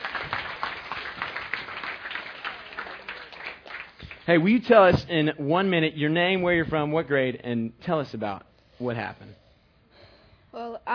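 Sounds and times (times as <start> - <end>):
audience clapping: 0.0 - 4.9
speech: 4.3 - 9.4.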